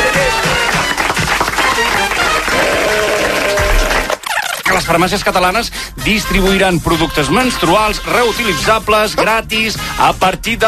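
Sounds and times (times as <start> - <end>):
large crowd applause: 0.0 - 4.2
voices cheering: 0.0 - 4.2
speech: 4.9 - 10.6.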